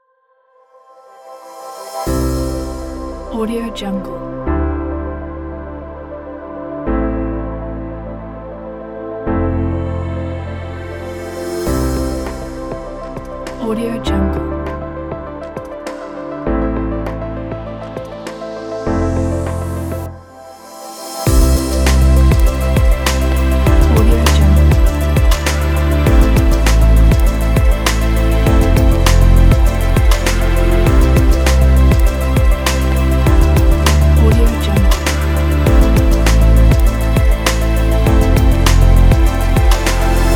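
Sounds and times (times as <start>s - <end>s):
atmospheric dreamy chillout ambient music: 0.0s - 40.3s.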